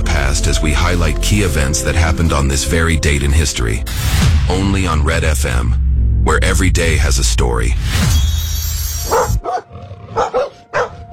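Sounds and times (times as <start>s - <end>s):
speech: 0.4s - 8.4s, 9.1s - 9.4s
aggressive dog growling: 9.1s - 11.1s.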